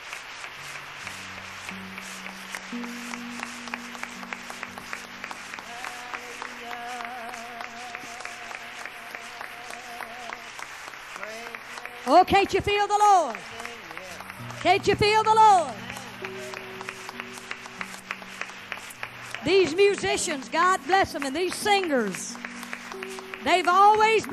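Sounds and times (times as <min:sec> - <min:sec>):
audience clapping: 0:00.0 - 0:24.3
speech: 0:02.7 - 0:02.9, 0:12.1 - 0:13.6, 0:14.6 - 0:15.8, 0:19.4 - 0:22.3, 0:23.4 - 0:24.3.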